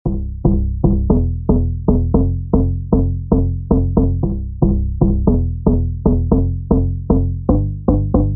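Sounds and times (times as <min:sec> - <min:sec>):
factory thumping loop: 0:00.0 - 0:08.3.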